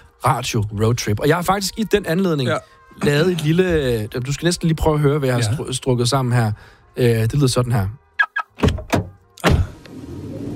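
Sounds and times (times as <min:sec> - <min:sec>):
speech: 0:00.2 - 0:08.0
electric car door thunks: 0:08.6 - 0:09.8.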